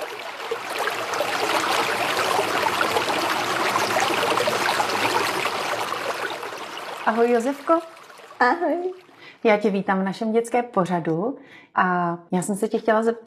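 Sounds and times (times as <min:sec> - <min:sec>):
river water rushing and trickling as a boat sets off: 0:00.0 - 0:09.2
speech: 0:07.1 - 0:13.2.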